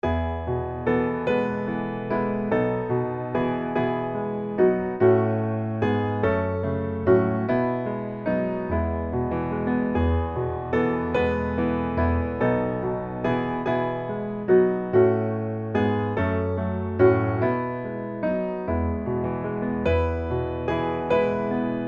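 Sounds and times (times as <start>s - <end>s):
piano: 0.0s - 21.8s.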